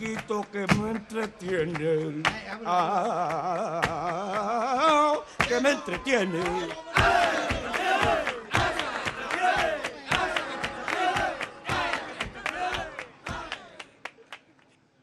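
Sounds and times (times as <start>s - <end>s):
speech: 0.0s - 8.3s
voices singing: 0.0s - 13.8s
flamenco palmas hand clapping: 0.0s - 14.7s
flamenco jaleo shouts: 5.5s - 13.8s.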